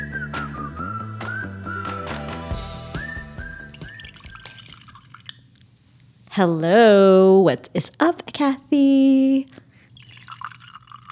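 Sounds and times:
coffee being poured into a cup: 3.4 - 5.8, 9.2 - 11.1
speech: 6.4 - 9.6.

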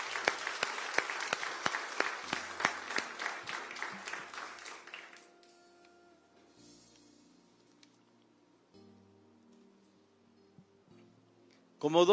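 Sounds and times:
audience applause: 0.0 - 5.5
speech: 11.8 - 12.1.

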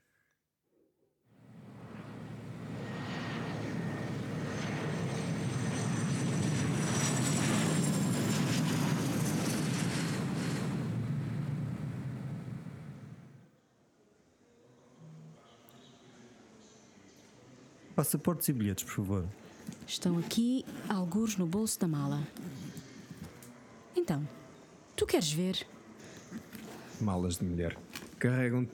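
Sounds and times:
aircraft roar: 1.4 - 13.4
speech: 18.0 - 22.6, 24.1 - 24.4, 25.0 - 25.8, 27.0 - 28.7.

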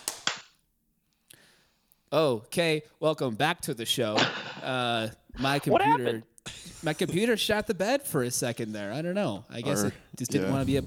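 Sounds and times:
hand claps for audio sync: 0.0 - 0.5
speech: 2.1 - 10.8.

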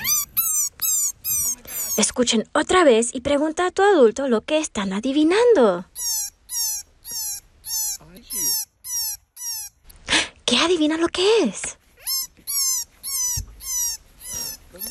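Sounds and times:
baby rabbit crying, calling its mother: 0.0 - 2.2, 5.9 - 9.8, 12.0 - 14.8
speech: 2.0 - 6.0, 10.6 - 11.8.

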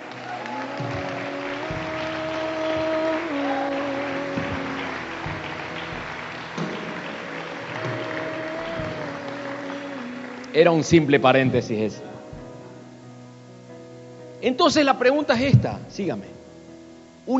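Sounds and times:
audience applause: 0.0 - 12.1
sustained keyboard notes: 0.0 - 17.3
speech: 10.6 - 12.1, 14.4 - 16.4.

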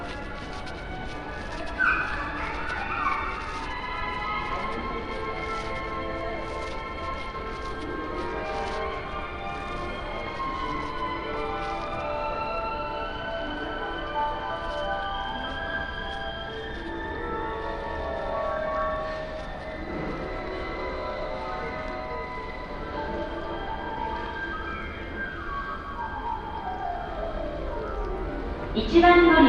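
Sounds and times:
clicks and clatters: 0.0 - 12.0
train rumble on a journey from Saga to Hakata: 0.0 - 29.4.

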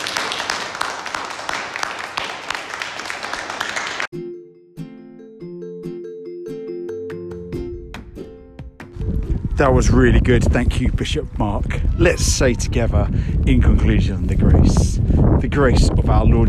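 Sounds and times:
audience applause: 0.0 - 4.1
speech: 9.6 - 16.4.

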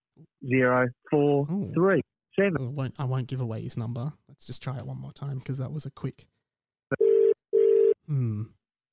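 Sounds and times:
speech: 0.2 - 6.3, 8.1 - 8.6
telephone ringing tone on call: 6.9 - 8.0.

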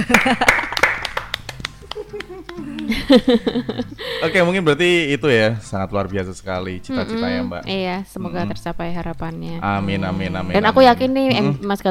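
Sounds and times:
speech: 0.0 - 0.6, 2.1 - 11.8
laughter: 0.0 - 0.9, 1.7 - 4.8
hand clapping: 0.0 - 3.6.

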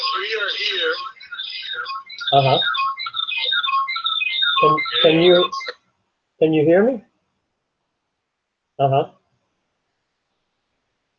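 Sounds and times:
outgoing call electronic ringing tones: 0.0 - 5.7
speech: 0.3 - 1.2, 1.8 - 2.8, 4.6 - 5.6, 6.4 - 7.1, 8.8 - 9.2.

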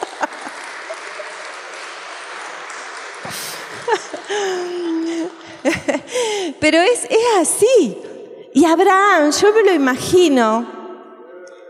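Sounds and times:
laughter: 0.0 - 1.7, 2.6 - 6.5
applause: 0.0 - 6.5
speech: 3.3 - 5.4, 6.2 - 10.8.

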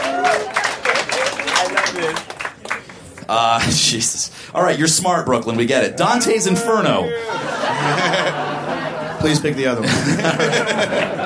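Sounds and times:
scattered cheers and voices: 0.0 - 2.4
crowd clapping and applauding: 0.0 - 3.4, 10.7 - 11.2
speech: 3.3 - 11.2
laughter: 6.1 - 11.2.

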